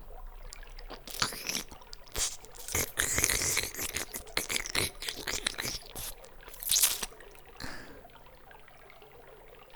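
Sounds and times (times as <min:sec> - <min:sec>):
intense ear licking: 0:00.5 - 0:08.0.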